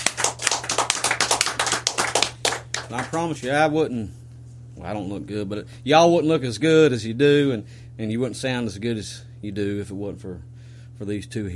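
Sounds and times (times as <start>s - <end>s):
audience round of applause: 0.0s - 3.5s
speech: 2.9s - 4.2s, 4.8s - 11.5s.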